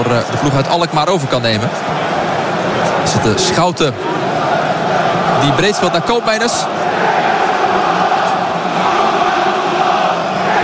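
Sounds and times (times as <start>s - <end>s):
speech: 0.0s - 2.2s, 3.0s - 4.3s, 5.4s - 8.1s
football crowd singing in stadium: 1.6s - 10.6s.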